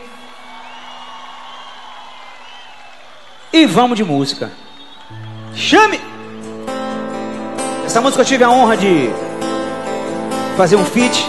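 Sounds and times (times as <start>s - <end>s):
audience applause: 0.0s - 5.6s
audience cheering: 0.0s - 7.4s
speech: 3.6s - 4.6s, 5.6s - 6.1s, 7.9s - 9.2s, 10.6s - 11.2s.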